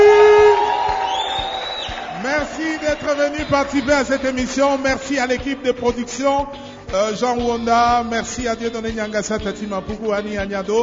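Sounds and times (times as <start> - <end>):
audience applauding: 0.0 - 5.3
speech: 3.0 - 10.8.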